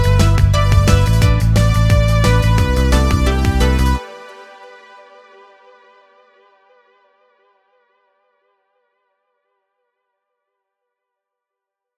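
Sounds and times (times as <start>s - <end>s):
game music: 0.0s - 4.8s.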